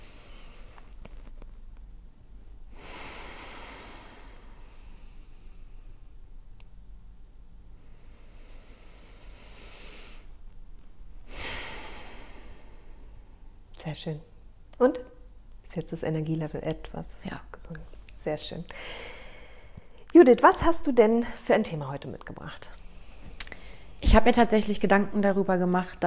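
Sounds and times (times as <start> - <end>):
deep breathing in and out: 0.0 - 1.2, 2.5 - 6.6, 7.2 - 13.7, 18.6 - 20.0, 22.8 - 24.0
low rumbling background: 0.0 - 26.0
speech: 13.9 - 15.1, 15.7 - 19.1, 20.1 - 22.8, 24.1 - 26.0.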